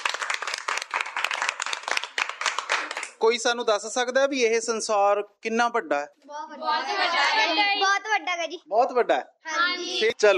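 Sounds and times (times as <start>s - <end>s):
loud applause: 0.0s - 3.2s
speech: 3.2s - 10.3s.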